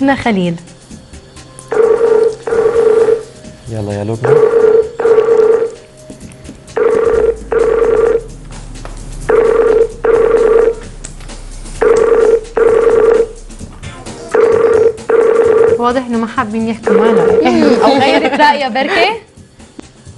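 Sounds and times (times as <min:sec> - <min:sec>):
speech: 0:00.0 - 0:00.8, 0:03.7 - 0:04.6, 0:15.9 - 0:19.3
telephone ringing with a clean electronic tone: 0:01.7 - 0:03.4, 0:04.2 - 0:05.8, 0:06.7 - 0:08.3, 0:09.3 - 0:10.9, 0:11.8 - 0:13.4, 0:14.3 - 0:15.8, 0:16.8 - 0:17.9
laughter: 0:17.4 - 0:18.9.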